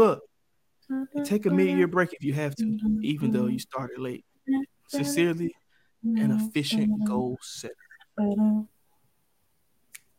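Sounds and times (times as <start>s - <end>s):
speech: 0.0s - 0.3s, 0.9s - 8.7s
person humming: 0.9s - 3.8s, 4.5s - 5.5s, 6.1s - 7.4s
finger snap: 9.9s - 10.1s.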